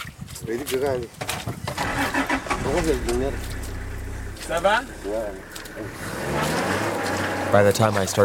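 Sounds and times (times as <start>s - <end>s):
speech: 0.5s - 3.6s, 4.5s - 6.6s, 7.5s - 8.2s
vehicle stuck in mud in Chad revving its engine: 1.8s - 7.8s.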